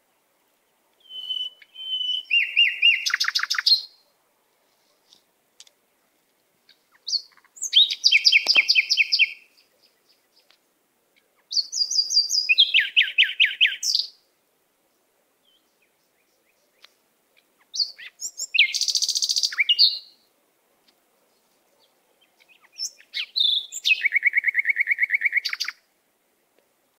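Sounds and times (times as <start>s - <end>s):
natural bird sounds: 1.0s - 4.1s, 6.7s - 14.2s, 14.9s - 25.8s.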